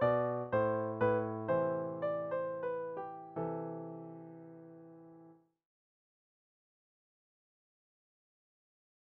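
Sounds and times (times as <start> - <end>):
piano prelude: 0.0 - 5.4.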